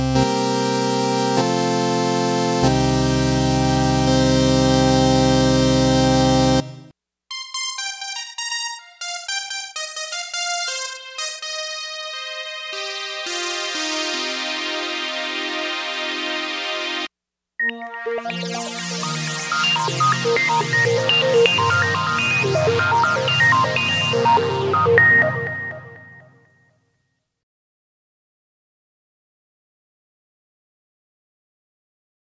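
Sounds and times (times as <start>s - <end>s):
synth: 0.2s - 6.9s, 7.5s - 17.1s, 17.6s - 26.6s.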